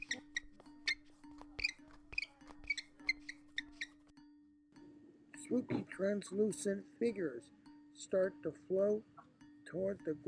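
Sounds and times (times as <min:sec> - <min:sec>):
squeaky shoes walking: 0:00.0 - 0:04.1
speech: 0:05.5 - 0:09.1, 0:09.7 - 0:10.2.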